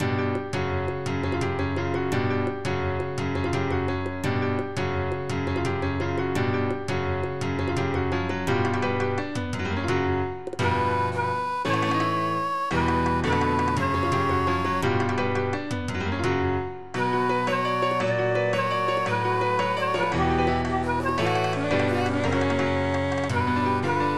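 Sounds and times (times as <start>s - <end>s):
sevillanas flamenco music: 0.0s - 24.1s.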